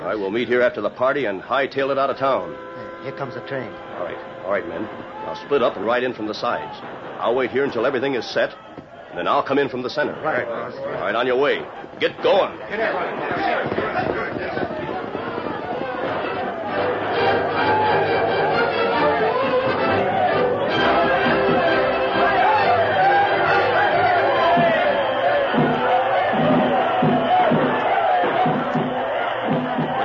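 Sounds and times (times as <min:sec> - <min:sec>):
large crowd celebrating: 0:00.0 - 0:30.0
overlapping chatter: 0:00.0 - 0:30.0
people shouting and cheering: 0:00.0 - 0:30.0
speech: 0:00.1 - 0:14.8.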